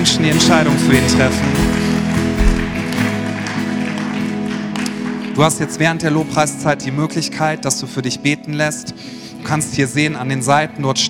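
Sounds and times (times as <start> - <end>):
speech: 0.0 - 1.8, 5.4 - 11.0
audience applause: 0.2 - 5.6.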